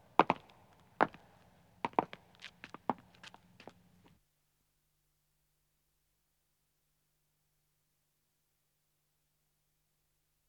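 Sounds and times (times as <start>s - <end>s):
two men's footsteps walking on stone: 1.9s - 3.8s.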